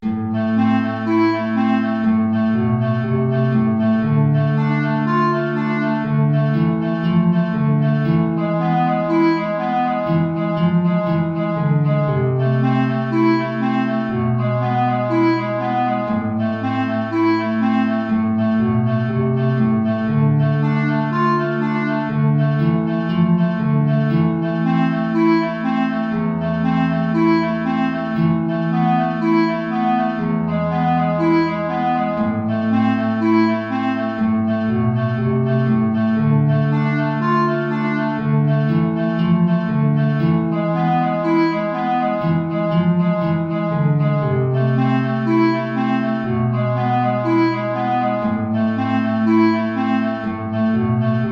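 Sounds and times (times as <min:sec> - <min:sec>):
B flat clarinet: 0:00.0 - 0:51.2
guitar: 0:00.0 - 0:51.2.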